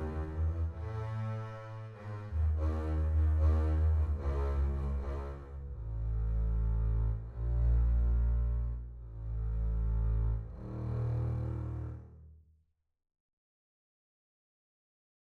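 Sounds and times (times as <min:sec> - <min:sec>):
double basses playing: 0:00.0 - 0:12.2.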